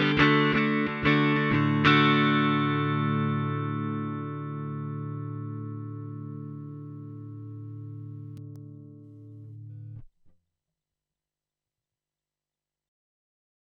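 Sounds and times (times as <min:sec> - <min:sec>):
Fender Bassman style guitar amplifier tone: 0:00.0 - 0:10.3.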